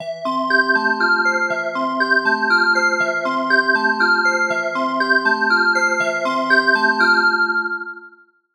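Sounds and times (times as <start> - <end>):
analog synth bells: 0.0 - 8.2.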